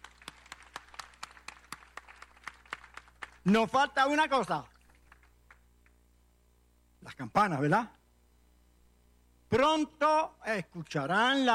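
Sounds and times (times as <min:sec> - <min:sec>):
audience applause: 0:00.0 - 0:03.5
speech: 0:03.4 - 0:04.7, 0:07.2 - 0:08.0, 0:09.5 - 0:11.5.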